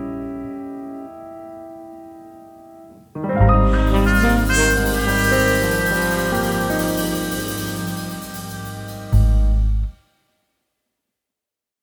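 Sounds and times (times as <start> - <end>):
instrumental music in A flat: 2.9 - 10.0.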